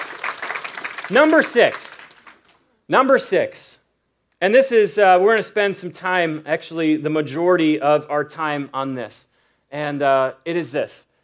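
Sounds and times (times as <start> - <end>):
clapping: 0.0 - 2.6
speech: 1.1 - 1.8, 2.9 - 3.6, 4.4 - 11.1.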